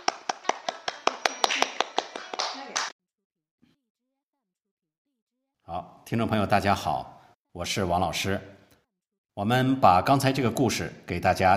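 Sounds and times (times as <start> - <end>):
rhythmic applause: 0.0 - 2.9
speech: 5.7 - 8.6, 9.4 - 11.5.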